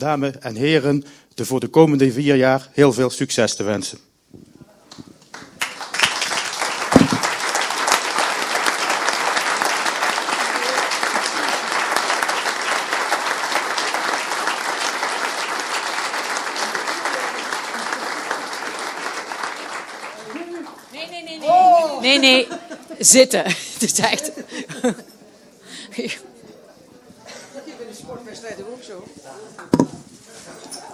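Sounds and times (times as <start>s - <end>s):
speech: 0.0s - 4.1s, 23.0s - 25.1s, 25.9s - 26.3s, 28.4s - 30.9s
loud applause from council audience: 5.3s - 21.3s
low thump: 7.0s - 7.2s
laughter: 16.6s - 18.8s, 22.0s - 26.4s.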